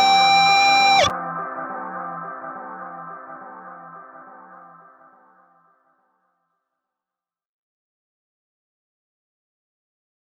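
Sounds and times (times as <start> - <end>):
audio feedback: 0.0 - 1.1.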